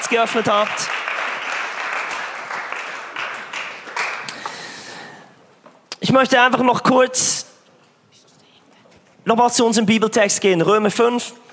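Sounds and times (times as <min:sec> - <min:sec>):
audience applause: 0:00.0 - 0:05.1
speech: 0:00.1 - 0:01.0, 0:06.1 - 0:07.5, 0:09.3 - 0:11.4.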